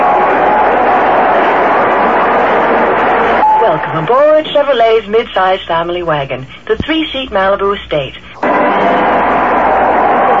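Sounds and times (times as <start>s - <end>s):
stadium crowd cheering at Anaheim Stadium: 0.0s - 4.2s, 8.4s - 10.3s
speech: 3.8s - 9.1s.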